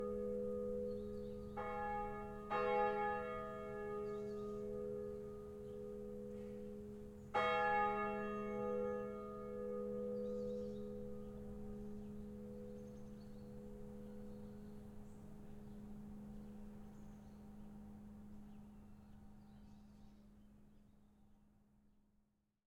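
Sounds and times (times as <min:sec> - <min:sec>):
church bells ringing in a village: 0:00.0 - 0:16.8.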